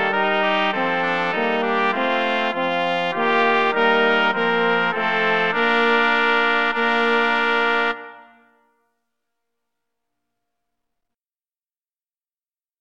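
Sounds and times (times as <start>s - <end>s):
brass quartet playing a tune: 0.0s - 8.5s.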